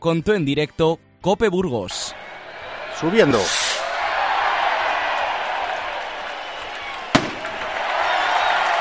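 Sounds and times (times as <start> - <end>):
speech: 0.0 - 2.2, 3.0 - 3.7
crowd roar in a packed main square: 1.9 - 8.7
firework bomb blast announcing the start of a town festival: 7.1 - 7.9.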